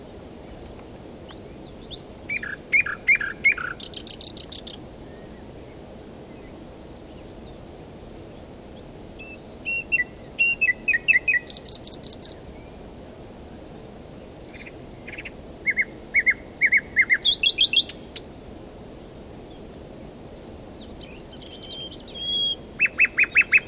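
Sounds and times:
common nightingale singing: 0:01.2 - 0:04.8, 0:09.2 - 0:12.5, 0:14.5 - 0:18.3, 0:20.8 - 0:23.6.

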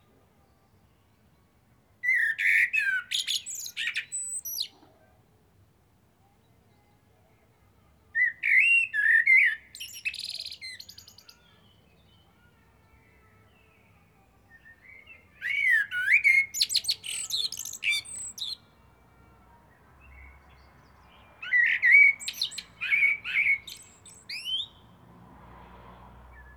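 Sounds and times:
common blackbird singing: 0:02.0 - 0:04.8, 0:08.2 - 0:12.3, 0:14.5 - 0:18.8, 0:20.0 - 0:24.9.

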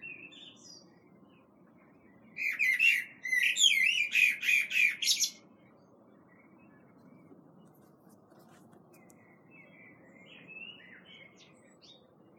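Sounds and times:
common blackbird Turdus merula singing: 0:00.0 - 0:01.0, 0:02.4 - 0:05.4, 0:09.2 - 0:12.1.

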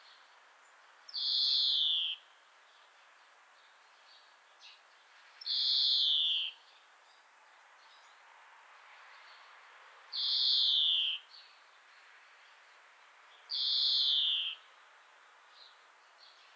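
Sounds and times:
European greenfinch Chloris chloris song with twittering, trills and buzzy wheezes: 0:00.0 - 0:02.9, 0:03.6 - 0:08.2, 0:10.2 - 0:12.7, 0:13.3 - 0:14.8.

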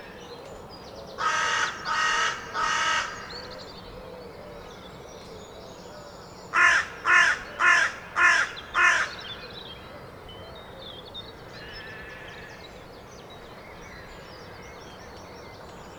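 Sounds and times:
carrion crow cawing: 0:01.2 - 0:03.3, 0:06.6 - 0:09.2.

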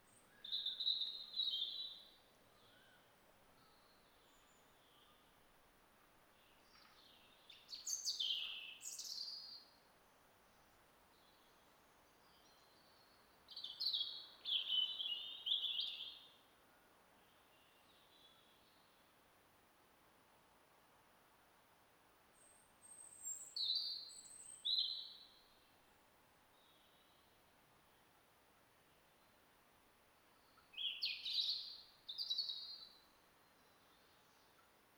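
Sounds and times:
European robin singing: 0:00.0 - 0:03.0, 0:06.6 - 0:09.6, 0:12.2 - 0:16.3, 0:22.4 - 0:25.4, 0:30.3 - 0:34.6
faint steady hiss: 0:00.0 - 0:34.9.

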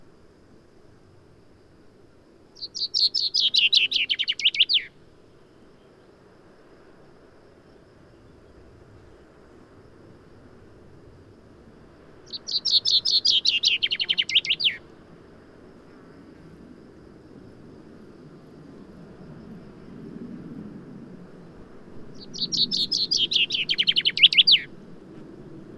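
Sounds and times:
common chaffinch singing: 0:02.6 - 0:05.0, 0:12.3 - 0:14.8, 0:22.2 - 0:24.7.

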